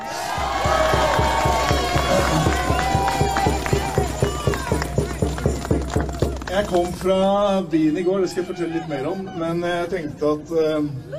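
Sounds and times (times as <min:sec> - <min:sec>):
audience applause: 0:00.0 - 0:06.9
speech: 0:06.6 - 0:11.1.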